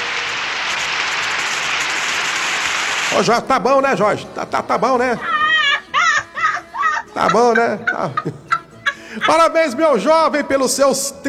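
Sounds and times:
applause: 0.0s - 3.3s
speech: 3.1s - 5.4s, 7.2s - 8.4s, 9.2s - 11.2s
laughter: 3.2s - 10.4s.

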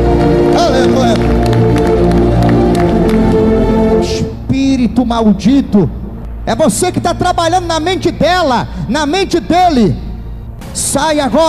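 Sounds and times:
audience applauding: 0.0s - 4.1s
speech: 5.0s - 10.0s, 10.7s - 11.4s.

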